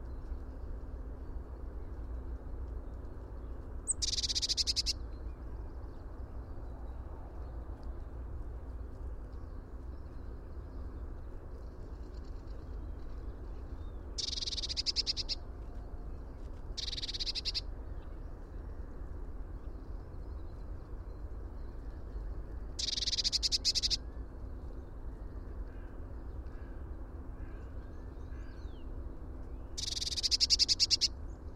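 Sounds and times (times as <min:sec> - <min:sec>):
low background rumble: 0:00.0 - 0:31.5
Eurasian blue tit churring calls: 0:03.9 - 0:05.0, 0:14.2 - 0:15.4, 0:16.8 - 0:17.6, 0:22.8 - 0:24.0, 0:29.8 - 0:31.1.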